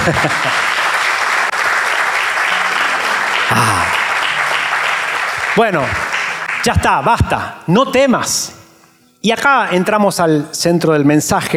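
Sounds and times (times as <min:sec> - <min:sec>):
speech: 0:00.0 - 0:00.8, 0:05.6 - 0:08.6, 0:09.2 - 0:11.5
audience applauding: 0:00.0 - 0:07.5.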